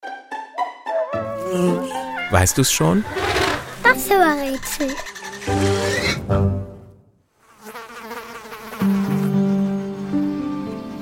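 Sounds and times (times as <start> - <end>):
fly buzzing: 1.3 - 6.5, 7.3 - 11.0
speech: 1.5 - 5.7.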